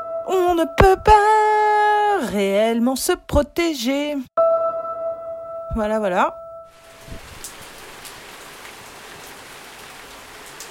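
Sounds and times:
speech: 0.3s - 1.6s, 2.2s - 4.3s, 5.8s - 6.8s
heavy rain drops hitting surfaces in a thunderstorm: 6.8s - 10.6s.

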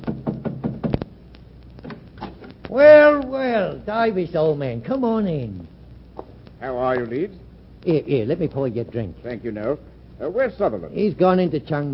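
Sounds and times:
heavy fists pounding on a door: 0.0s - 1.0s
speech: 2.7s - 5.7s, 6.6s - 11.9s.

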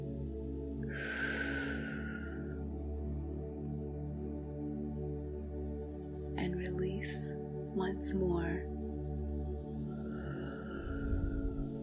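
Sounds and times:
low sustained drone: 0.0s - 11.8s
deep breath in during a guided meditation: 0.8s - 2.7s, 9.9s - 11.8s
speech: 7.1s - 8.7s.

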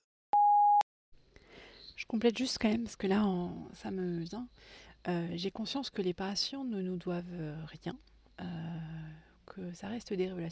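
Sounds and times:
answering machine beep: 0.4s - 0.8s
speech: 2.0s - 8.7s, 9.5s - 10.5s.

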